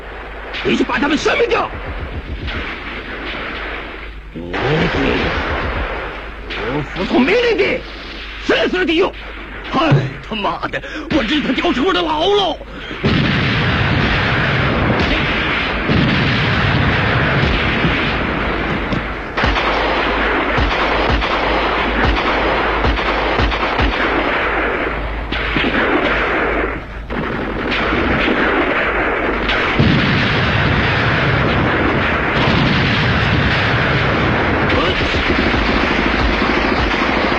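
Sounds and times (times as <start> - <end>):
gunfire in a wartime battle scene: 0.0 - 8.4, 9.1 - 11.8, 12.9 - 37.3
artillery fire in a wartime battle barrage: 0.0 - 11.9, 12.8 - 37.3
speech: 0.6 - 1.9, 4.4 - 5.4, 6.6 - 13.2.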